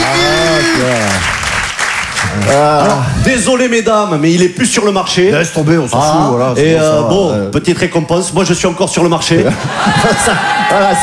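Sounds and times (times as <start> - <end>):
loud shouted voice: 0.0 - 1.3
small group applauding a wedding announcement: 0.0 - 3.5, 9.7 - 11.0
speech: 2.6 - 11.0
laughter: 9.3 - 11.0.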